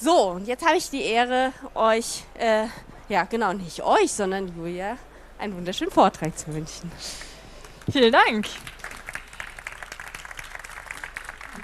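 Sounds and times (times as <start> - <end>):
speech: 0.0 - 7.3, 7.9 - 8.7
audience applause: 8.6 - 11.6.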